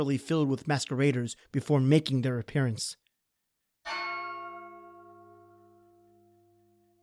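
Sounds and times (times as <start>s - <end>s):
speech: 0.0s - 3.0s
clock bell striking midnight: 3.9s - 6.8s.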